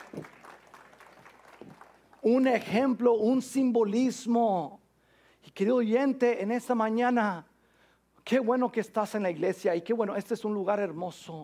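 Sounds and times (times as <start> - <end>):
audience applause: 0.0 - 2.2
speech: 2.2 - 4.8, 5.6 - 7.5, 8.3 - 11.4.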